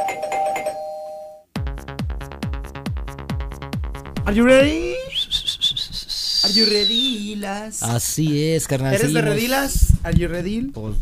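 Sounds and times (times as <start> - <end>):
electronic doorbell ringing: 0.0 - 1.5
rhythmic beat: 1.6 - 8.4
speech: 4.3 - 4.9, 6.5 - 11.0.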